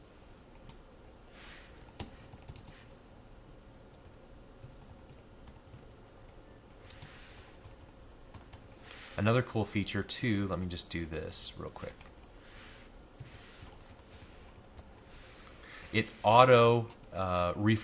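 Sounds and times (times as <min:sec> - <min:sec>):
steady low hum: 0:00.0 - 0:17.8
computer keyboard typing: 0:01.8 - 0:03.0, 0:04.0 - 0:08.7, 0:11.8 - 0:12.3, 0:13.2 - 0:15.2
speech: 0:09.2 - 0:12.1, 0:15.9 - 0:17.8.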